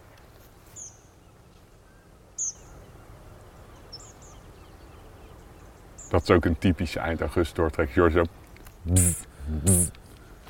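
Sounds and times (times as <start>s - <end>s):
speech: 6.1s - 10.0s
Tree Pipit flight calls: 8.9s - 10.0s.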